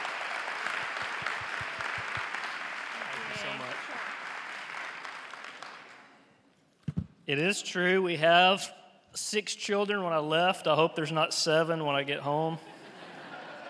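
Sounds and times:
audience applause: 0.0 - 6.2
laughter: 2.9 - 4.0, 12.6 - 13.6
speech: 7.3 - 12.7.

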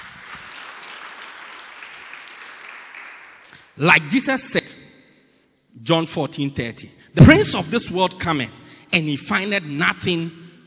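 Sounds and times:
audience clapping: 0.0 - 4.3
speech: 3.8 - 4.7, 5.9 - 10.4.

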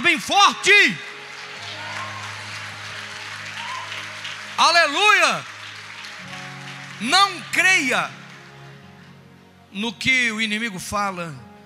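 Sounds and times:
speech: 0.1 - 1.1, 4.6 - 5.5, 7.0 - 8.2, 9.7 - 11.4
audience applauding: 0.8 - 8.9.

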